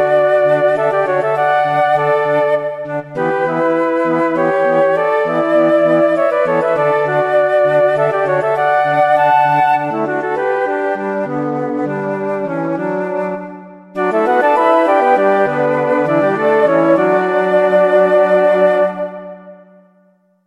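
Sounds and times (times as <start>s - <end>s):
flute quartet playing: 0.0s - 19.7s.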